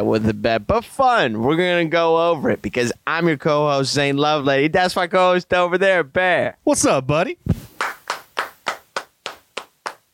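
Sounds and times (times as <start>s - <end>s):
speech: 0.0s - 7.6s
hand claps from two podcast hosts applauding themselves: 7.7s - 10.1s.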